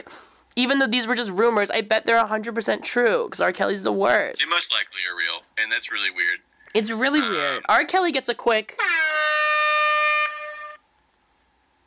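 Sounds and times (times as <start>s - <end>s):
speech: 0.1s - 9.0s
rap horn air horn sound effect blast: 8.8s - 10.8s.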